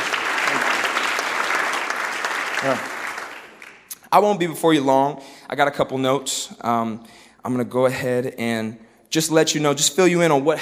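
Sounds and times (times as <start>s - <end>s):
audience applause: 0.0s - 3.9s
speech: 2.6s - 2.9s, 4.1s - 10.6s.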